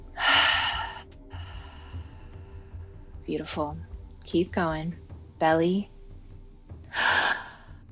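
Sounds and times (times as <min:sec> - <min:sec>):
slow exhale during a guided breathing exercise: 0:00.1 - 0:02.6, 0:06.9 - 0:07.8
speech: 0:03.3 - 0:05.9.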